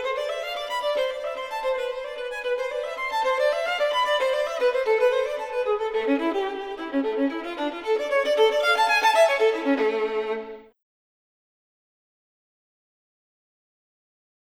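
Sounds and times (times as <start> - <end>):
solo violin partita gigue: 0.0 - 10.7.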